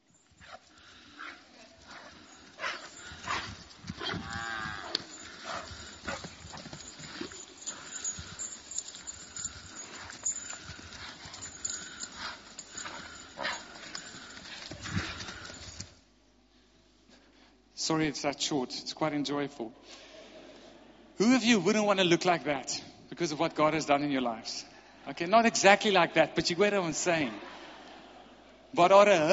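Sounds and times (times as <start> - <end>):
calf's hooves running in the pasture: 0.1 - 16.0
speech: 17.9 - 20.1, 21.2 - 27.5, 28.7 - 29.3.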